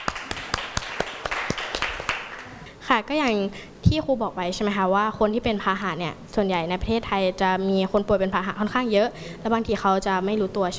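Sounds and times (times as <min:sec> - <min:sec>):
classroom students clapping: 0:00.0 - 0:02.6
speech: 0:02.9 - 0:10.7.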